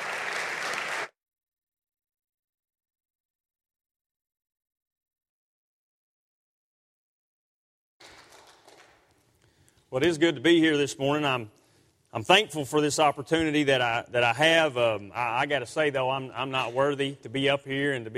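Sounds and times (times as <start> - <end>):
Bible Baptist church congregation applauding a guest speaker: 0.0 - 1.2, 8.0 - 9.1
speech: 9.9 - 18.1.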